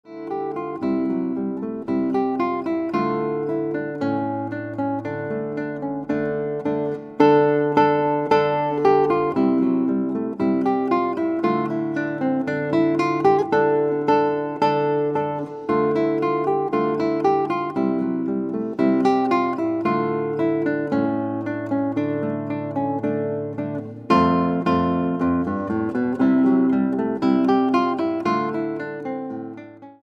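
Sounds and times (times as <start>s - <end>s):
guitar: 0.0s - 30.0s.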